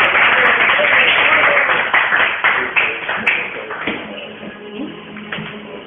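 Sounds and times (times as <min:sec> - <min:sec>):
audience applause: 0:00.0 - 0:04.2.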